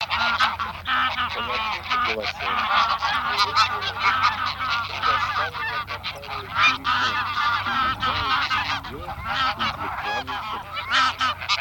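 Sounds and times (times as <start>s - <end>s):
greylag geese honking: 0.0s - 11.5s.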